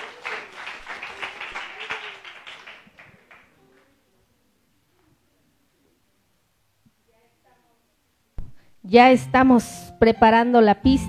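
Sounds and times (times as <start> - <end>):
crowd applause: 0.0 - 4.0
speech: 8.9 - 11.0.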